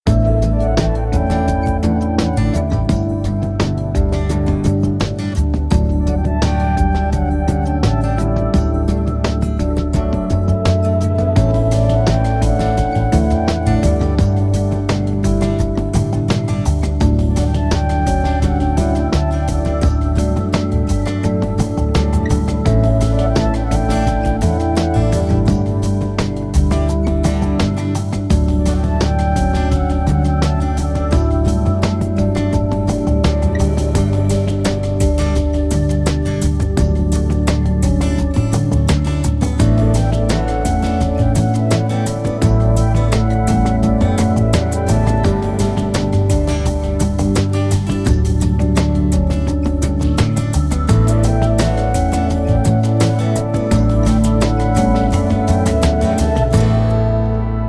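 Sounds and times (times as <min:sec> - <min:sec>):
background music pads: 0:00.0 - 0:57.6.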